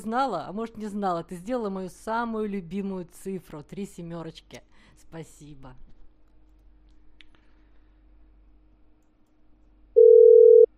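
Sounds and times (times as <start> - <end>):
speech: 0.0 - 5.9
telephone tone while a number is dialed: 10.0 - 10.7.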